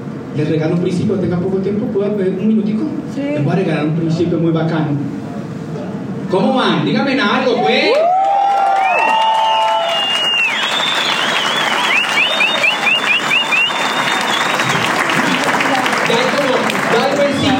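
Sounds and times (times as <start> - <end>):
speech: 0.4 - 5.2, 6.3 - 8.1
audience applause: 7.6 - 17.5.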